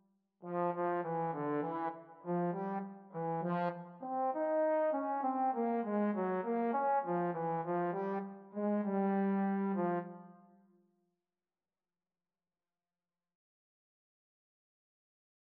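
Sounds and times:
trombone duet: 0:00.4 - 0:10.1.

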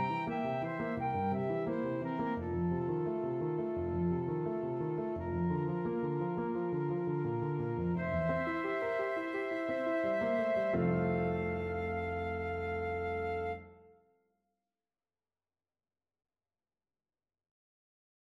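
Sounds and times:
alto saxophone: 0:00.0 - 0:04.5, 0:05.1 - 0:13.6
flute: 0:00.0 - 0:14.0.

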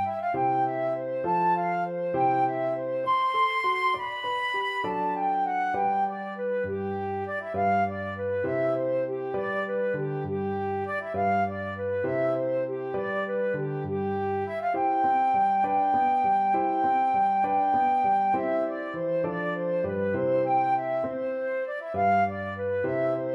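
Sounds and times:
flute playing a gigue in G major: 0:00.0 - 0:23.3.

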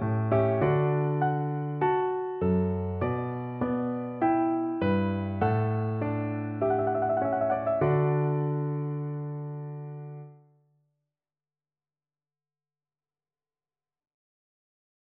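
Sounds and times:
piano duet: 0:00.0 - 0:10.4.

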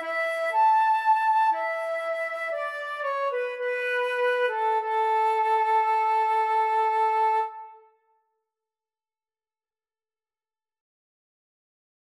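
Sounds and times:
violin in a violin and flute duet: 0:00.0 - 0:07.9
flute in a violin and flute duet: 0:00.0 - 0:08.2.

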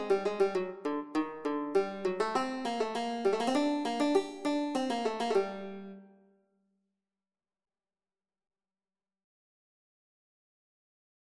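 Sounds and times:
banjo playing: 0:00.0 - 0:06.2.

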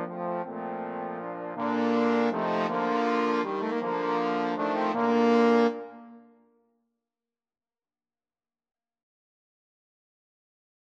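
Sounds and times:
trombone quartet playing a sonata: 0:00.0 - 0:06.1.

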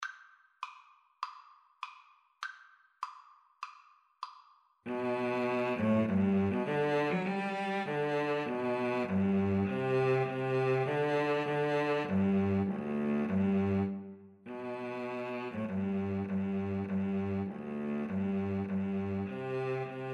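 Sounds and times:
cello duet: 0:04.9 - 0:20.1.

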